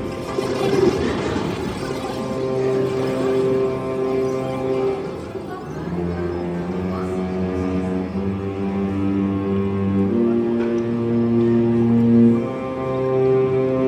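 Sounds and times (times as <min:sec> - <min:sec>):
violins tuning: 0:00.0 - 0:13.8.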